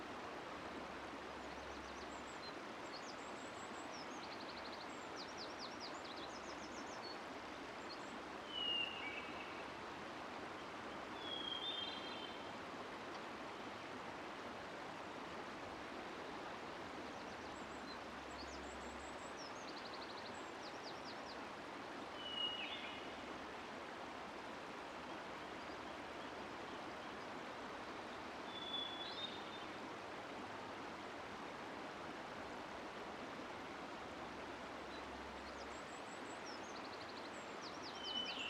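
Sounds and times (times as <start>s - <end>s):
forest river flowing: 0.0s - 38.4s.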